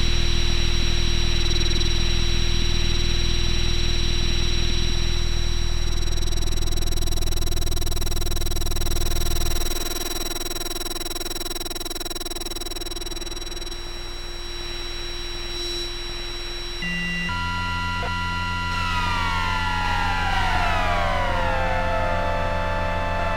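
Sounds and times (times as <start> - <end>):
drone in F: 0.0 - 23.3.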